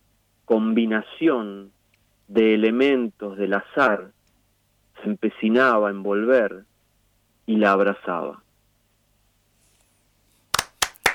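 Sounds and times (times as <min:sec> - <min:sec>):
speech: 0:00.5 - 0:04.2, 0:05.0 - 0:06.7, 0:07.5 - 0:08.4
hand claps after a poetry reading: 0:10.5 - 0:11.1.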